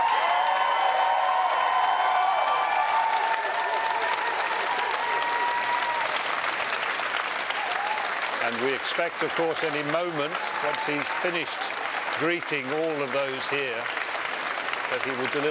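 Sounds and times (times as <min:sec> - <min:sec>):
long sustained applause from large crowd: 0:00.0 - 0:15.5
speech: 0:08.5 - 0:14.0, 0:14.9 - 0:15.5.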